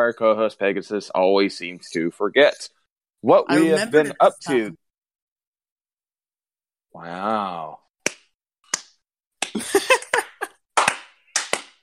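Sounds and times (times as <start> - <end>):
speech: 0.0 - 4.8, 7.0 - 7.8
laughter: 3.5 - 4.7, 9.6 - 10.5
hand clapping: 8.0 - 11.8.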